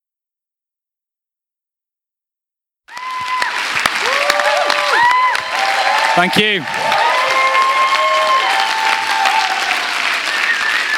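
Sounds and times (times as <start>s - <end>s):
crowd applauding: 2.9s - 10.9s
speech: 6.2s - 6.8s.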